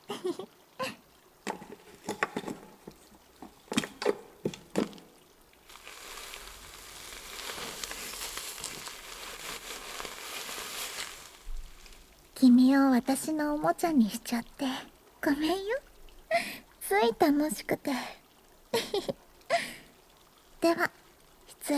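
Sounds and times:
carbonated shampoo foam fizzing in hair: 0:01.0 - 0:21.7
wet squishy squelches of lathering shampoo: 0:01.1 - 0:14.0
speech: 0:12.4 - 0:15.9, 0:16.9 - 0:18.2, 0:19.0 - 0:19.2, 0:20.6 - 0:21.0.

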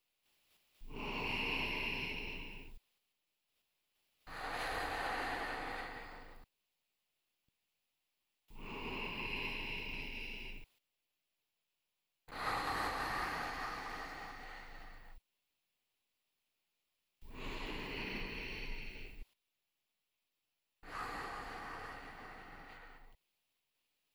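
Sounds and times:
slow relaxed human breathing: 0:00.2 - 0:02.9, 0:04.1 - 0:06.5, 0:08.5 - 0:10.8, 0:12.3 - 0:15.3, 0:17.2 - 0:19.4, 0:20.8 - 0:23.2.

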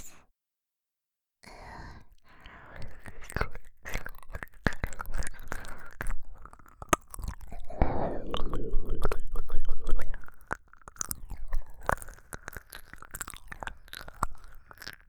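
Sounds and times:
ASMR ear licking on a binaural microphone: 0:03.4 - 0:15.0.

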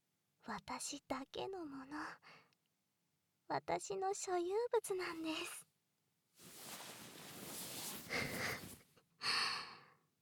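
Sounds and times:
speech: 0:00.5 - 0:02.4, 0:03.5 - 0:05.7
heavy panting breath: 0:08.1 - 0:08.7.

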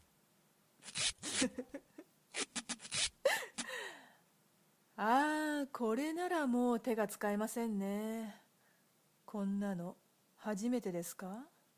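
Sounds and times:
duct tape pulled off the roll to bind hands: 0:00.8 - 0:01.6, 0:02.3 - 0:03.2
speech: 0:01.4 - 0:01.8, 0:05.0 - 0:08.4, 0:09.3 - 0:11.5.

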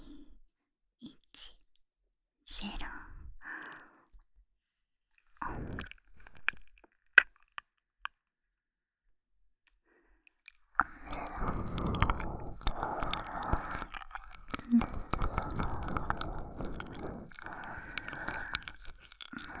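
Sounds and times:
whispering: 0:02.5 - 0:03.3, 0:10.8 - 0:19.5
ear licking: 0:05.4 - 0:07.6, 0:10.5 - 0:19.5.

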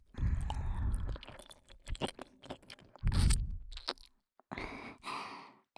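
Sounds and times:
ear licking sounds on the right: 0:00.1 - 0:04.1.

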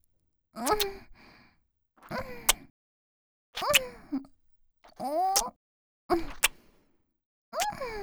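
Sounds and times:
wet sucking sounds of oral sex: 0:00.7 - 0:01.0, 0:02.0 - 0:02.6, 0:03.6 - 0:03.9, 0:06.2 - 0:06.5, 0:07.6 - 0:07.8.

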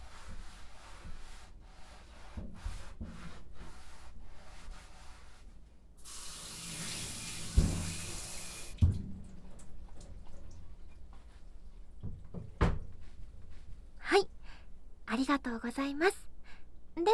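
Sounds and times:
tap running while a cutting board is rinsed: 0:06.0 - 0:14.6
speech: 0:15.1 - 0:16.2.

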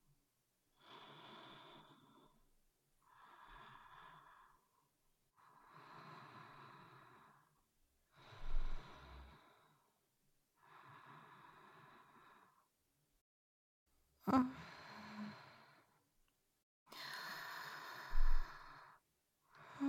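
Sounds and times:
person breathing in sleep recorded with binaural microphones: 0:00.8 - 0:02.4, 0:03.0 - 0:04.8, 0:05.4 - 0:10.0, 0:10.6 - 0:12.7, 0:14.3 - 0:16.0, 0:16.9 - 0:19.8.

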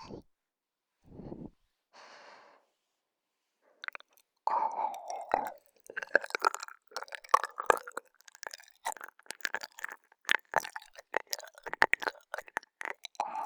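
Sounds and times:
ASMR ear licking: 0:03.8 - 0:13.4.

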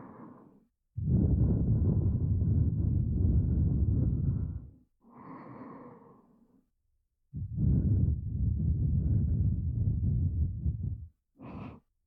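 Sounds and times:
heartbeat: 0:01.0 - 0:04.6, 0:07.4 - 0:11.1.

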